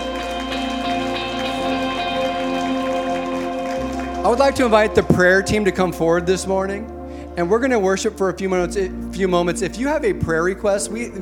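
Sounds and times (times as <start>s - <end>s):
audience hand clapping: 0.0s - 6.2s
speech: 4.2s - 11.1s.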